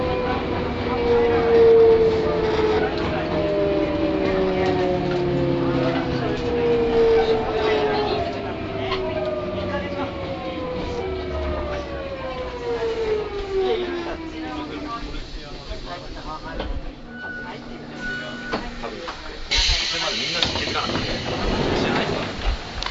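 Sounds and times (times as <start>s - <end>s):
Sotetsu 5000 train motor: 0.0s - 22.8s.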